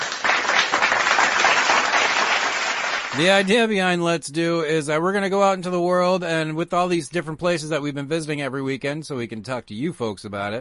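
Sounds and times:
crowd applauding: 0.0s - 3.4s
speech: 3.2s - 10.5s.

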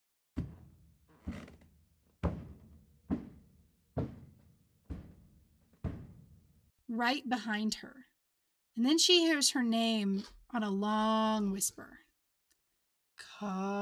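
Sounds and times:
heavy thudding footsteps: 0.4s - 6.7s
speech: 7.0s - 8.1s, 8.8s - 12.0s, 13.4s - 13.8s.

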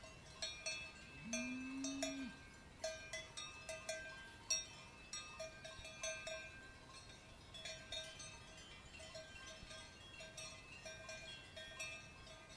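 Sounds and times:
cowbells clanking: 0.0s - 12.5s
short low cow moo: 1.2s - 2.4s.

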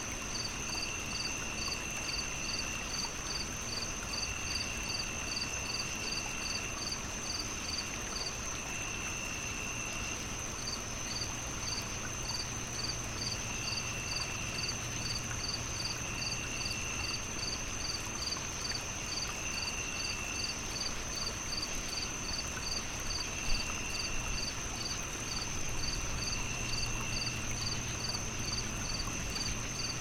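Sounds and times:
relaxing nighttime nature ambience: 0.0s - 30.0s.

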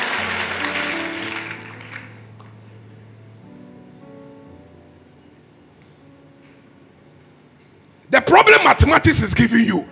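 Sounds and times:
audience clapping: 0.0s - 2.6s
speech: 8.1s - 9.9s.

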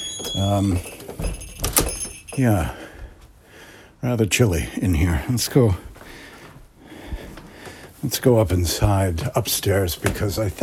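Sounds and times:
door being opened: 0.0s - 2.4s
speech: 0.2s - 1.8s, 2.4s - 2.9s, 4.0s - 5.9s, 8.0s - 10.6s.

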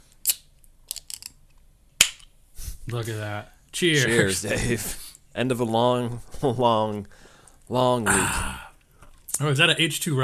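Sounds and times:
beer can cracked open: 0.2s - 1.4s, 2.0s - 2.3s
speech: 2.9s - 8.6s, 9.4s - 10.2s.

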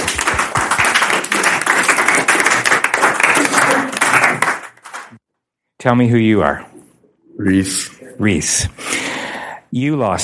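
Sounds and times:
round of applause: 0.0s - 5.2s
speech: 5.8s - 6.7s, 7.4s - 9.0s, 9.7s - 10.2s.

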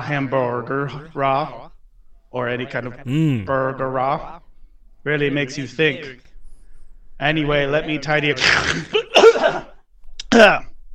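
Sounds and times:
speech: 0.1s - 1.7s, 2.3s - 4.4s, 5.0s - 6.2s, 7.2s - 9.0s, 10.3s - 10.7s
person sneezing: 3.1s - 3.6s.

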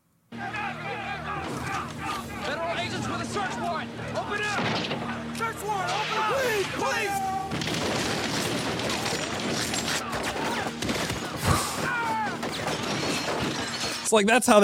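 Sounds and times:
people shouting: 0.3s - 12.9s
speech: 2.2s - 8.2s, 14.1s - 14.6s
gunfire in a movie siege scene: 7.5s - 13.8s.

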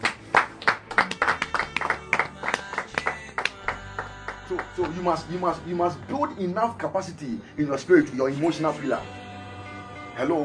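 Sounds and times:
audience clapping: 0.0s - 5.2s
speech: 4.8s - 9.2s, 10.2s - 10.4s.

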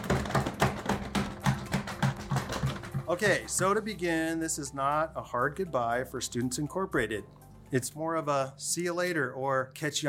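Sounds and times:
drum roll: 0.0s - 3.8s
speech: 3.1s - 10.0s.

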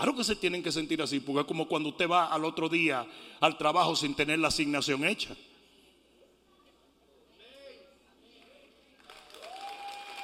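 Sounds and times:
speech: 0.0s - 5.5s
audience applause: 9.0s - 10.2s.

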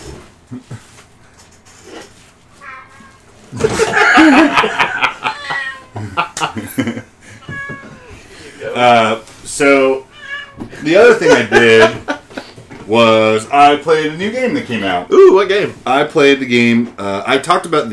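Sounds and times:
speech: 0.5s - 0.9s, 3.5s - 4.0s, 8.8s - 10.0s, 10.8s - 12.0s, 12.9s - 17.9s
female jungle cat in heat meowing: 2.6s - 3.4s, 5.2s - 6.0s, 7.4s - 8.2s, 10.0s - 10.7s
people talking and laughing softly: 3.5s - 9.2s, 10.7s - 13.0s.

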